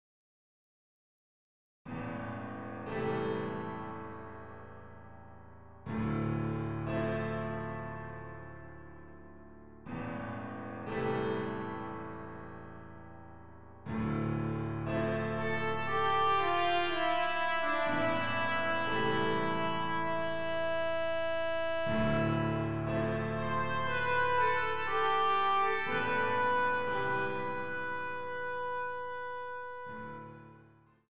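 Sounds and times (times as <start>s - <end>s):
piano: 1.9s - 31.1s
trumpet playing a sonatina: 15.4s - 30.3s.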